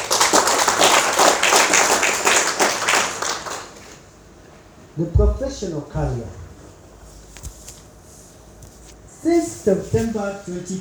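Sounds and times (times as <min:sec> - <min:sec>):
audience clapping: 0:00.0 - 0:04.1
speech: 0:05.0 - 0:06.4, 0:09.2 - 0:10.8.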